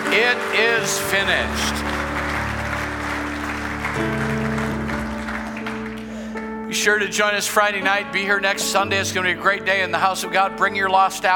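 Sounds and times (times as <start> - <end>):
audience applauding: 0.0 - 6.5
sustained organ-like chords: 0.0 - 11.3
speech: 0.2 - 2.0, 6.8 - 11.3.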